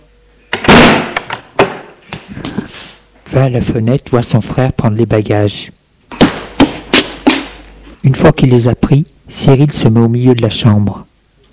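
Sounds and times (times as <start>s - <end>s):
door slammed shut: 0.5s - 1.9s
speech: 3.3s - 5.8s, 8.0s - 11.1s.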